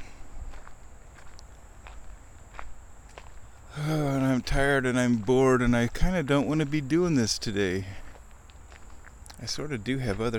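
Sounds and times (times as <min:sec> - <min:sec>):
footsteps of someone walking fast: 0:00.0 - 0:10.3
speech: 0:04.5 - 0:08.0, 0:09.4 - 0:10.3.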